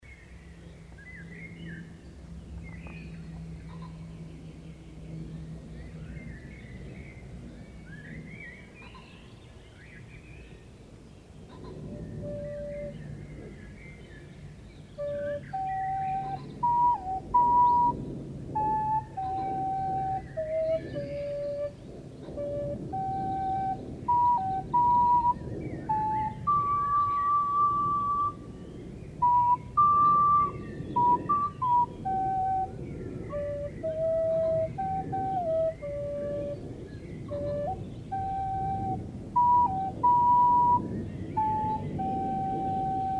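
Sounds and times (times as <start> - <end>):
recorder break: 11.8 - 13.1, 15.0 - 28.5, 29.2 - 36.7, 37.3 - 43.1.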